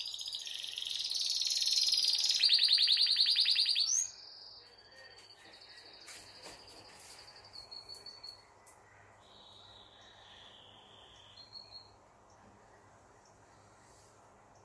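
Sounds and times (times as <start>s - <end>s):
canary singing: 0.0s - 8.6s, 9.2s - 12.0s.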